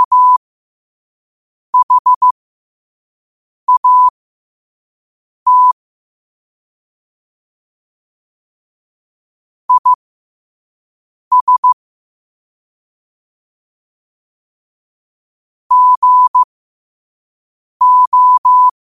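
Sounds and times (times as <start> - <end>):
morse code at 5 wpm: 0.0 - 0.4, 1.8 - 2.3, 3.7 - 4.1, 5.5 - 5.8, 9.7 - 10.0, 11.3 - 11.8, 15.7 - 16.5, 17.8 - 18.7.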